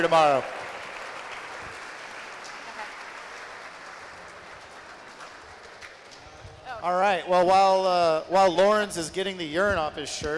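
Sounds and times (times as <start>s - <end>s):
speech: 0.0s - 0.6s, 6.8s - 10.3s
audience applause: 0.0s - 6.2s.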